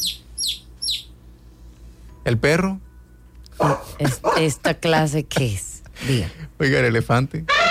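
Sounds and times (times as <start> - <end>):
baby chick peeping: 0.0 - 1.1
speech: 2.3 - 2.8, 3.6 - 7.6.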